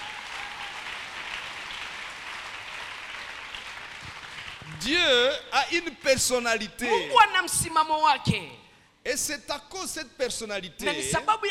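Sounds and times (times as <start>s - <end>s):
congregation applauding and cheering at a church service: 0.0s - 5.0s
speech: 4.7s - 11.4s.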